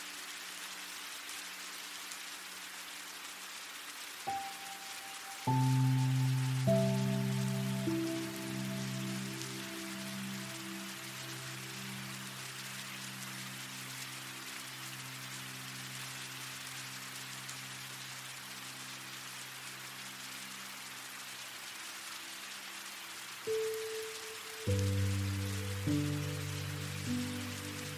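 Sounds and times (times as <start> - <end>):
rain: 0.0 - 27.9
relaxing music: 4.3 - 20.9, 23.3 - 27.9.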